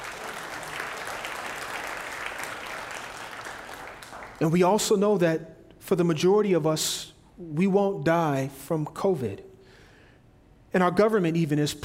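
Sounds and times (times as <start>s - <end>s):
audience hand clapping: 0.0s - 4.8s
speech: 4.4s - 9.5s, 10.7s - 11.8s.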